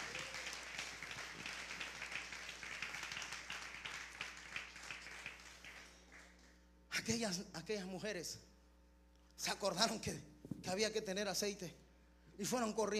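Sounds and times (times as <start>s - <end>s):
crowd applauding: 0.0s - 6.6s
faint low hum: 0.0s - 12.9s
speech: 7.1s - 8.5s, 9.4s - 11.8s, 12.4s - 12.9s.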